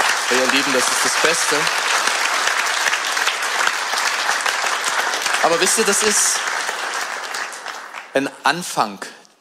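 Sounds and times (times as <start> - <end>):
audience applause: 0.0 - 8.7
speech: 0.5 - 2.1, 5.4 - 6.6, 8.2 - 9.2.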